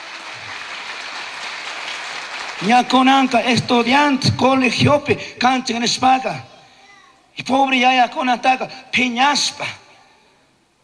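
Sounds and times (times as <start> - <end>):
church congregation applauding during an evening service: 0.0 - 4.2
speech: 2.6 - 6.5, 7.4 - 9.8.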